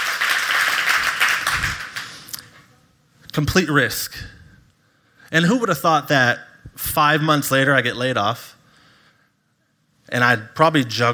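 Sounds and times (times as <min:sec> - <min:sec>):
audience clapping: 0:00.0 - 0:02.4
speech: 0:03.4 - 0:04.4, 0:05.3 - 0:08.6, 0:10.1 - 0:11.1.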